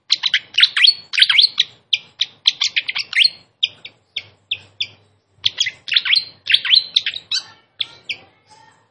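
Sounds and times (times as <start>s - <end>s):
Malaysian pied fantail singing with chirps and trills: 0.0s - 8.8s.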